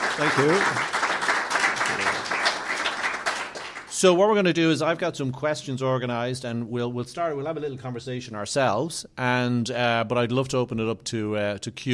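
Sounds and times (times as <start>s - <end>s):
audience applause welcoming a guest at an Embassy of Ireland book club event: 0.0s - 3.9s
speech: 0.2s - 1.0s, 4.0s - 11.9s.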